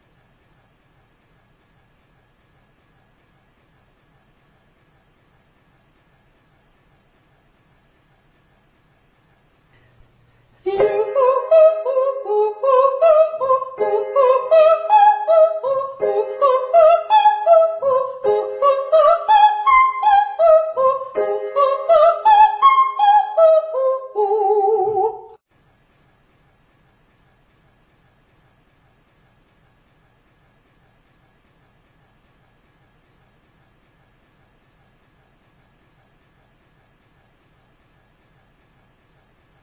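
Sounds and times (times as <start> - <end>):
person singing ascending triads and octaves to high D: 10.7 - 25.4.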